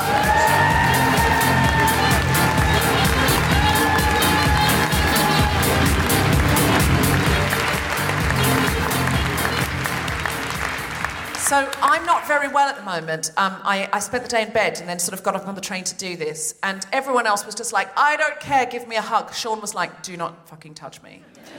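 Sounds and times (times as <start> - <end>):
high sustained shouts: 0.0 - 7.3
audience cheering and applauding a guest: 0.0 - 12.1
speech: 11.6 - 21.5.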